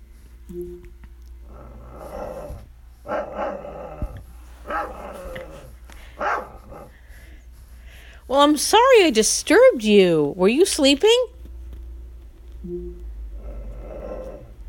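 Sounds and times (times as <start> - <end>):
steady low hum: 0.0 - 14.6
speech: 0.5 - 1.0, 8.3 - 11.3
dog barking from smart speaker: 3.1 - 3.6, 4.6 - 5.4, 6.2 - 6.9.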